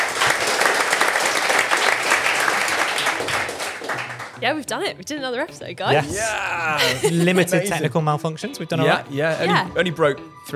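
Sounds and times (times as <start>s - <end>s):
audience applause: 0.0s - 4.4s
speech: 4.4s - 10.5s
laughter: 5.9s - 8.0s.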